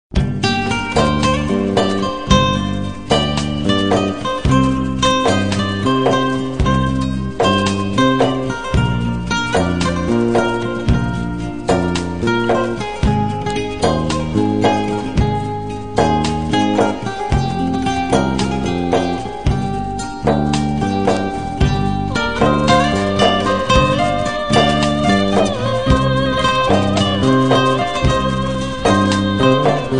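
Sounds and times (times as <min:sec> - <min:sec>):
calm background music: 0:00.2 - 0:29.9.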